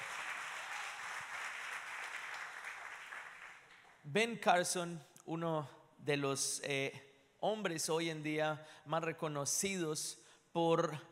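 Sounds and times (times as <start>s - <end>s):
audience applause: 0.0s - 4.0s
speech: 4.0s - 11.1s.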